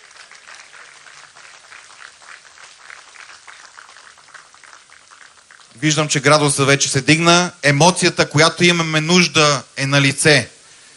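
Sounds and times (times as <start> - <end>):
applause: 0.0 - 6.3
speech: 5.8 - 10.5.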